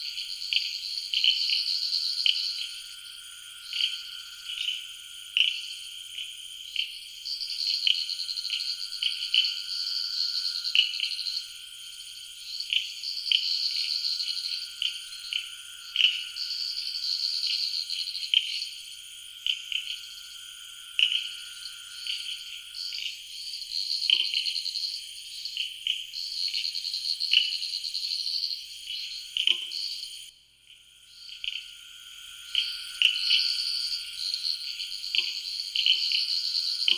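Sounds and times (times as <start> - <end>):
frogs in a night wetland in Ghana: 0.0 - 30.3, 31.0 - 36.9
faint steady tone: 0.0 - 36.9.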